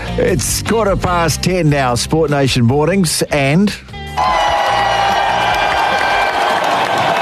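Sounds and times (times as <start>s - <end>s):
speech: 0.2s - 4.6s
round of applause and cheering: 4.2s - 7.2s.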